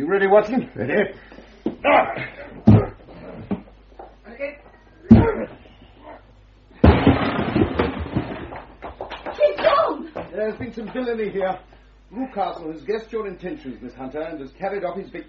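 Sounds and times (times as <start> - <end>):
speech: 0.0 - 2.9, 10.4 - 15.2
people grunting: 1.8 - 3.2, 5.0 - 6.2
door splintering crash: 6.8 - 8.8.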